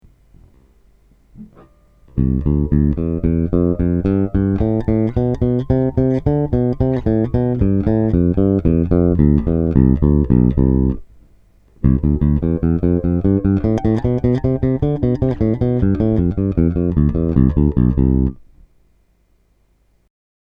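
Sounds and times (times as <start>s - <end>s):
four-finger pizzicato exercise: 2.2s - 11.0s, 11.8s - 18.4s.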